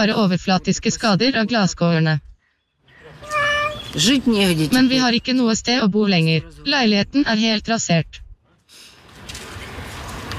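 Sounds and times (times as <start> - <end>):
speech: 0.0 - 2.3, 3.9 - 8.2
cat meowing: 3.2 - 3.9.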